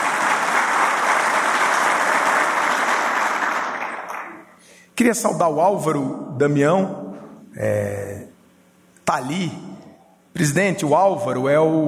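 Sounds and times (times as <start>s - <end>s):
round of applause from many people: 0.0s - 4.6s
speech: 5.0s - 7.0s, 7.6s - 8.3s, 9.1s - 9.6s, 10.4s - 11.8s.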